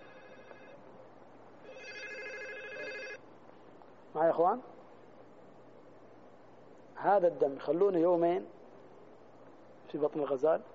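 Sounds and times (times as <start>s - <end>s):
mobile phone ringing during a religious lecture: 0.0s - 0.8s, 1.6s - 3.2s
low steady hiss: 0.0s - 10.7s
speech: 4.2s - 4.8s, 7.0s - 8.6s, 9.9s - 10.7s.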